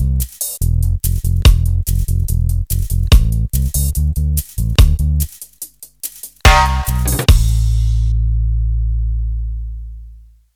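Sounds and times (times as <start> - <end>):
bass: 0.0 - 5.5, 6.4 - 10.5
drums: 0.0 - 8.2.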